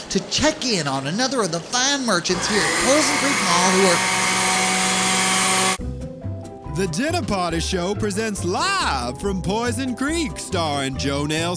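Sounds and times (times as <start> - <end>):
speech: 0.1 - 4.3, 6.8 - 11.5
blender running: 2.3 - 5.8.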